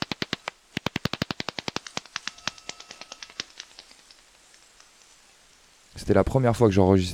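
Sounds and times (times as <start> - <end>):
bat echolocation clicks through heterodyne detector: 0.0 - 5.1
speech: 6.1 - 7.1.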